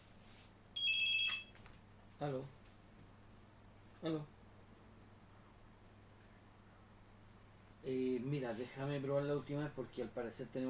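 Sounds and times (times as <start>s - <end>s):
faint hiss: 0.0s - 10.6s
electronic telephone ring for an incoming call: 0.8s - 1.6s
speech: 2.2s - 2.6s, 4.0s - 4.4s, 7.8s - 10.6s.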